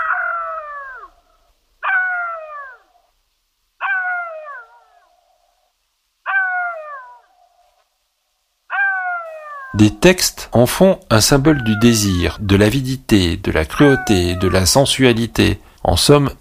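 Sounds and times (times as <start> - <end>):
jackal howling: 0.0 - 3.1, 3.8 - 5.6, 6.3 - 7.7, 8.7 - 9.8, 11.3 - 12.2, 13.8 - 14.8
speech: 9.7 - 16.3.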